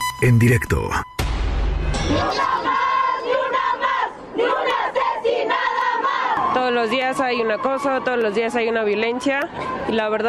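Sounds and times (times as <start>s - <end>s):
speech: 0.2s - 1.1s, 6.6s - 10.2s
large crowd of protesters shouting and chanting: 2.2s - 8.6s.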